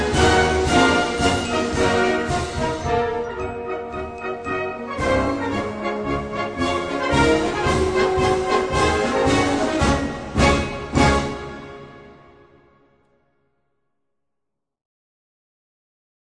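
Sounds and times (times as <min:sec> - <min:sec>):
march music: 0:00.0 - 0:13.0.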